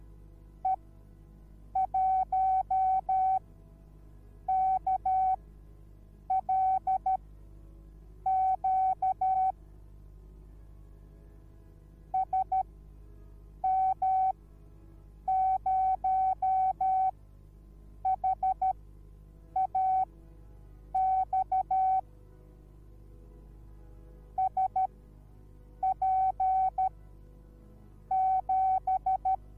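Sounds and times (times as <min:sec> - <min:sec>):
morse code beeps: 0:01.8 - 0:03.4, 0:04.5 - 0:05.4, 0:06.3 - 0:07.2, 0:08.3 - 0:09.5, 0:12.2 - 0:12.6, 0:13.6 - 0:14.3, 0:15.3 - 0:17.1, 0:18.0 - 0:18.8, 0:19.6 - 0:20.1, 0:21.0 - 0:22.0, 0:24.4 - 0:24.9, 0:25.8 - 0:26.9, 0:28.1 - 0:29.4.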